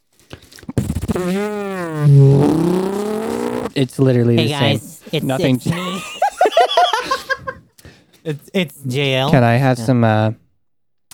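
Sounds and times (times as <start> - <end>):
voice imitating a motor starting up: 0.8 - 3.7, 4.4 - 6.1
speech: 1.2 - 2.9, 3.8 - 6.2, 8.2 - 10.4
laughter: 4.4 - 7.7.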